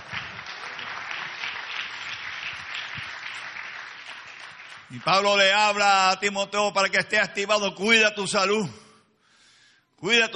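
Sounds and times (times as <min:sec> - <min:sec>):
audience applause: 0:00.0 - 0:05.8
speech: 0:04.9 - 0:08.8, 0:10.0 - 0:10.3.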